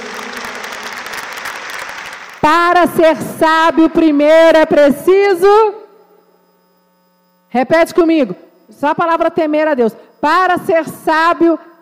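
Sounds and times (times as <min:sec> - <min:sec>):
crowd applauding: 0:00.0 - 0:02.6
speech: 0:02.4 - 0:05.8, 0:07.5 - 0:11.7.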